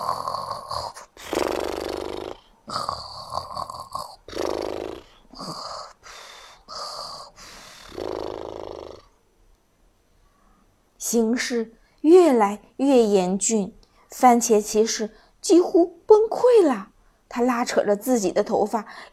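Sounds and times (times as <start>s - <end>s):
snoring: 0.0s - 9.2s
speech: 11.1s - 19.1s.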